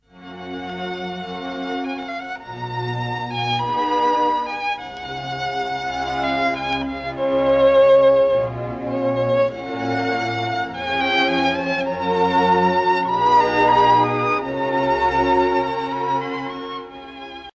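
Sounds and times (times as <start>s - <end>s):
violin: 0.0s - 17.5s.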